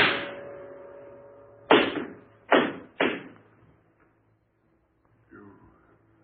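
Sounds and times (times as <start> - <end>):
gunshots in a radio drama: 1.7 - 3.4.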